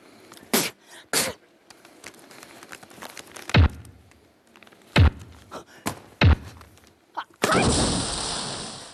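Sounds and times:
wall being smashed: 0:03.0 - 0:04.2, 0:04.9 - 0:08.0.

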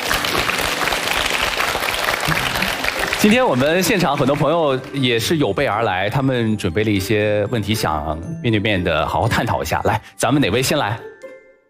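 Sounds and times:
audience applause: 0:00.0 - 0:05.4
speech: 0:03.2 - 0:11.1.

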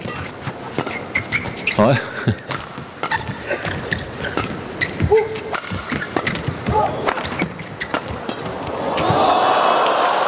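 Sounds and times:
crowd noise: 0:00.0 - 0:10.2
speech: 0:01.8 - 0:02.6
racket strikes in a doubles rally: 0:02.5 - 0:09.3.

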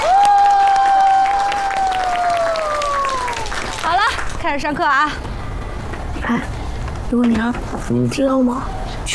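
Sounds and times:
classroom applause: 0:00.0 - 0:04.4
speech: 0:04.5 - 0:05.3, 0:06.3 - 0:09.1.

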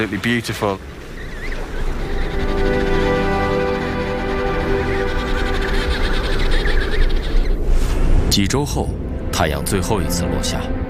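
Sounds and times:
speech: 0:00.0 - 0:01.0, 0:08.4 - 0:10.8
emperor penguin colony calling: 0:00.0 - 0:07.7.

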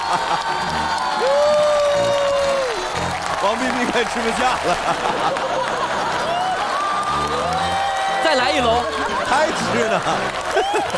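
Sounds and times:
laughter: 0:00.0 - 0:00.9, 0:03.6 - 0:10.9
audience applause: 0:00.0 - 0:10.9
speech: 0:03.4 - 0:06.2, 0:08.3 - 0:10.9.

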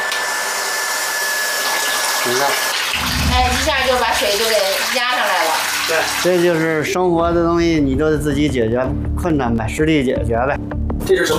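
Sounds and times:
household booster pump droning: 0:01.0 - 0:06.7
rushing water from a tap: 0:01.4 - 0:07.0
speech: 0:02.2 - 0:11.3
indistinct voices talking: 0:03.0 - 0:04.7.

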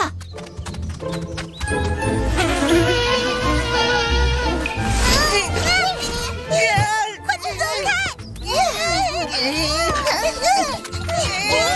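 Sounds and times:
mosquitoes buzzing: 0:02.0 - 0:07.8
animated voices: 0:04.9 - 0:11.7.

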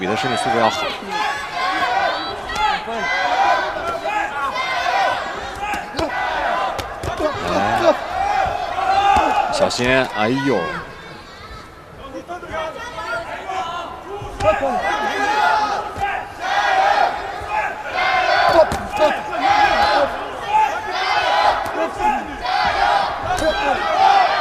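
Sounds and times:
speech: 0:00.0 - 0:01.4, 0:09.6 - 0:10.9, 0:14.4 - 0:15.0
fan club cheering and shouting for a competitor at a live match: 0:00.0 - 0:24.3.

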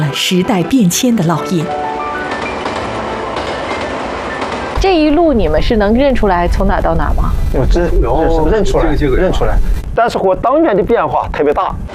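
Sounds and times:
train pulling away from Tongliao station: 0:00.0 - 0:10.0
speech: 0:00.1 - 0:02.0, 0:04.8 - 0:11.9
faint rhythmic train wheel clatter: 0:00.9 - 0:06.5.

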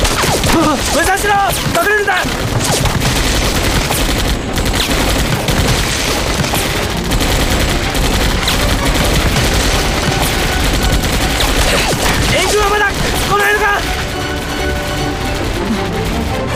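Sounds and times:
machine gun bursts: 0:00.0 - 0:16.4
speech: 0:00.6 - 0:03.6.

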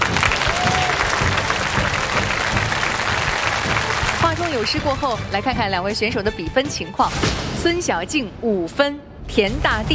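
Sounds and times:
audience applause: 0:00.0 - 0:05.1
speech: 0:04.5 - 0:09.9.

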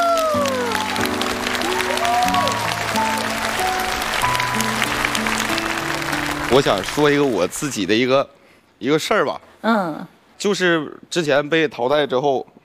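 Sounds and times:
audience applause: 0:00.0 - 0:08.1
speech: 0:06.5 - 0:12.6.

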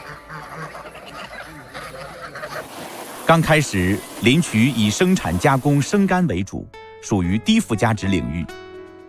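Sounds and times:
Landes geese honking: 0:00.0 - 0:06.0
speech: 0:03.3 - 0:08.6.

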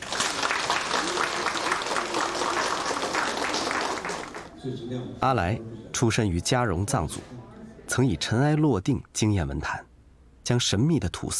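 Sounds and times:
audience applause: 0:00.0 - 0:04.5
speech: 0:04.6 - 0:09.9, 0:10.5 - 0:11.3.

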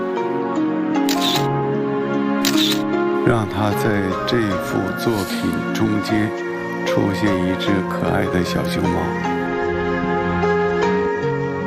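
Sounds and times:
steady humming tonal musical background: 0:00.0 - 0:11.6
camera shutter clicks taking a photo: 0:01.1 - 0:01.5, 0:02.4 - 0:02.9
speech: 0:03.2 - 0:09.4.

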